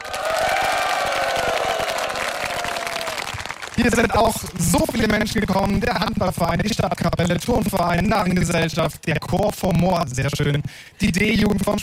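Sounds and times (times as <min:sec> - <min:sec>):
crowd applause: 0:00.0 - 0:04.7
speech: 0:03.8 - 0:11.8.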